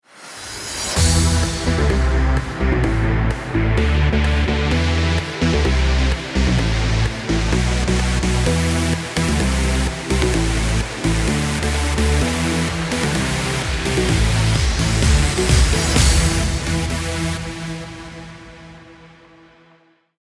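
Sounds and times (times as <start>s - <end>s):
music: 0.0s - 20.1s.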